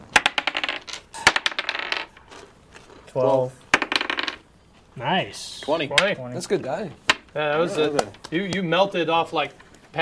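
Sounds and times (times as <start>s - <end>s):
dice being rolled across a hard surface: 0.1s - 3.0s, 3.7s - 4.5s
speech: 3.1s - 3.6s, 5.0s - 10.0s.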